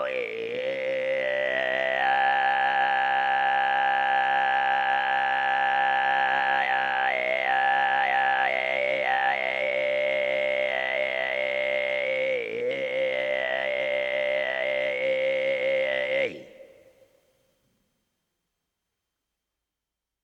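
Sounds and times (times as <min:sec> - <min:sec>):
Steppe Kargiraa throat singing: 0:00.0 - 0:17.3.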